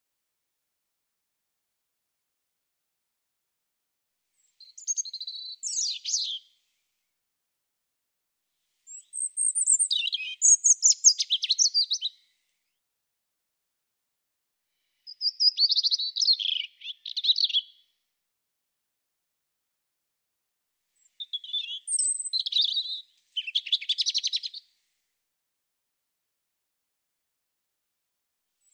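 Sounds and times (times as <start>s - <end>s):
European robin singing: 4.6s - 6.5s, 8.9s - 12.2s, 15.1s - 17.8s, 21.0s - 24.6s.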